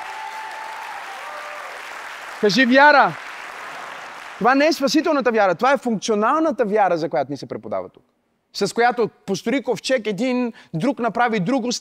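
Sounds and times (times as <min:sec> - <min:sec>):
audience clapping: 0:00.0 - 0:05.1
speech: 0:02.4 - 0:03.2, 0:04.4 - 0:11.7.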